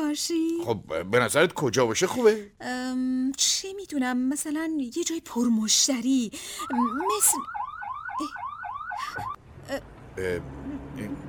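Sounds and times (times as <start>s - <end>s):
speech: 0.1s - 7.6s, 8.2s - 8.4s, 9.0s - 11.2s
car alarm whooping: 6.6s - 9.4s.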